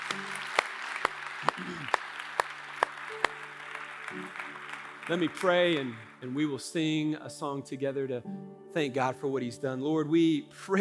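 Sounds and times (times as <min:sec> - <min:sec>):
audience round of applause: 0:00.0 - 0:06.4
speech: 0:05.1 - 0:10.7.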